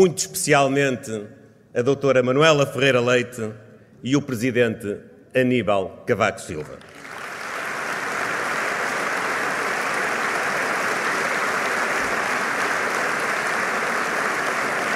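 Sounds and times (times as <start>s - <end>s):
speech: 0.0s - 7.0s
audience applause: 6.8s - 14.9s.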